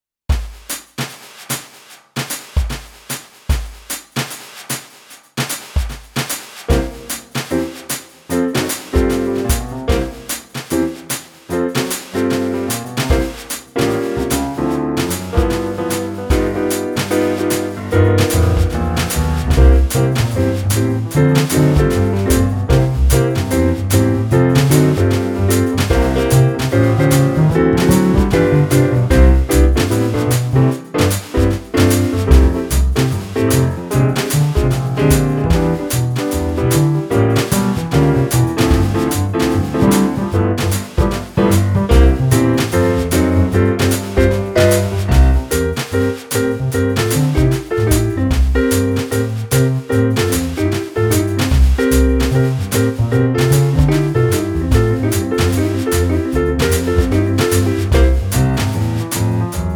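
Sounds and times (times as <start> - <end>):
simple jazzy music: 5.7 - 59.7.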